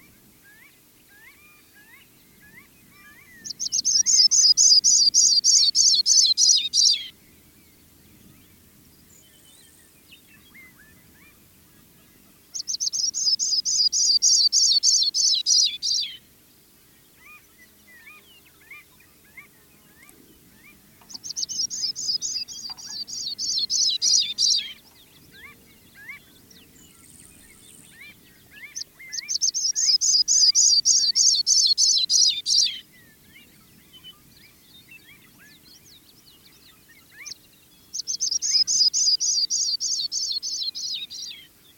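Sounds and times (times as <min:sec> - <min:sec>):
Sprague's pipit calling: 0:01.1 - 0:07.1, 0:12.5 - 0:16.2, 0:18.0 - 0:26.3, 0:27.9 - 0:32.8, 0:38.0 - 0:41.3.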